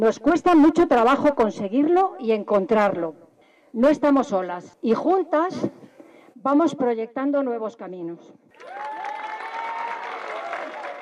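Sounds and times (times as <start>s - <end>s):
speech: 0.0s - 5.8s, 6.4s - 8.9s
audience applause at a Women's Day feminist dance event: 8.5s - 11.0s.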